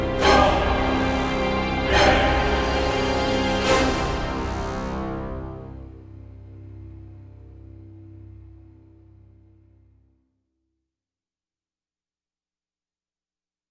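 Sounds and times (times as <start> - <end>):
choir: 0.0 - 6.1
orchestra: 0.0 - 9.7.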